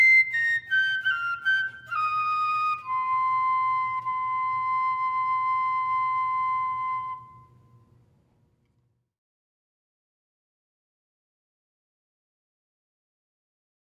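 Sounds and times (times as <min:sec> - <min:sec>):
fife melody: 0:00.0 - 0:07.8.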